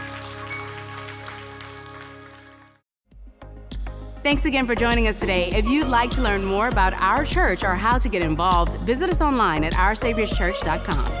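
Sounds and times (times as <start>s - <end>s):
audience applause: 0.0s - 2.8s
speech: 4.2s - 11.1s.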